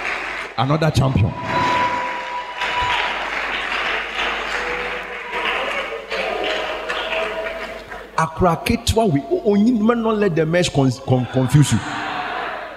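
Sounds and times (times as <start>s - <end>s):
audience clapping: 0.0s - 8.8s
speech: 0.6s - 1.6s, 8.2s - 12.0s.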